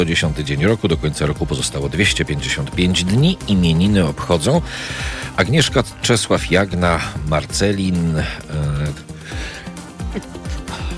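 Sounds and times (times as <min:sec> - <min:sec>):
speech: 0:00.0 - 0:09.1, 0:10.1 - 0:10.4
man sneezing: 0:10.0 - 0:10.9.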